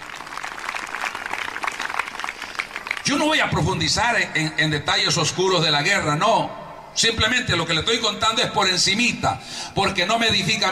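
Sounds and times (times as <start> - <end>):
audience applause: 0.0 - 3.1
speech: 3.1 - 10.7.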